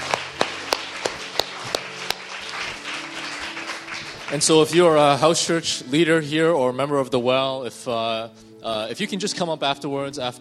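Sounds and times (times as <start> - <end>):
audience applause: 0.0 - 5.2
speech: 4.3 - 10.4.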